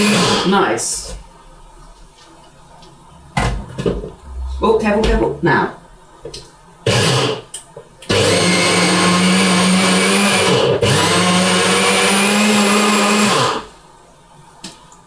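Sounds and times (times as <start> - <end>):
blender grinding nuts into powder: 0.0 - 0.6, 6.9 - 13.8
speech: 0.0 - 1.2, 4.6 - 6.5.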